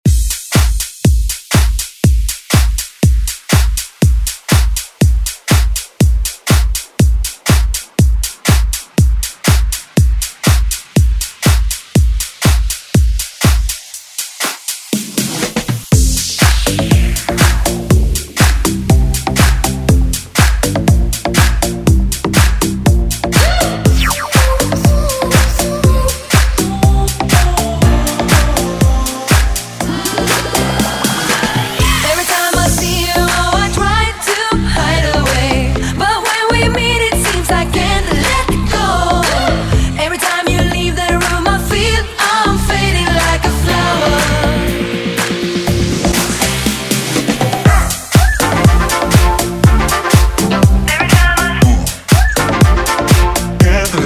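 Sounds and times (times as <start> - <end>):
dance music: 0.0 - 54.0.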